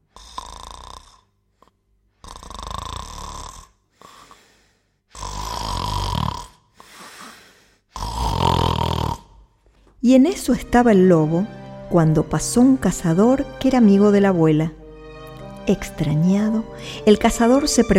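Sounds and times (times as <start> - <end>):
loud snoring: 0.0 - 1.3, 2.2 - 4.4, 5.1 - 9.5
speech: 10.0 - 14.8, 15.7 - 17.9.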